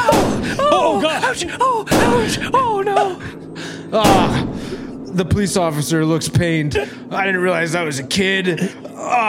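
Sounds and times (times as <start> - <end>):
gunshots: 0.1 - 0.5, 1.9 - 2.4, 4.0 - 4.6
speech: 1.3 - 4.5, 5.1 - 9.2.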